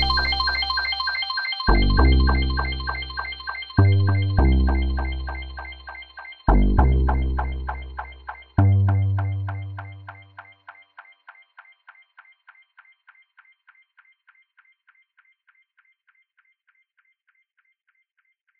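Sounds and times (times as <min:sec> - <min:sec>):
ambient intro music: 0:00.0 - 0:10.8.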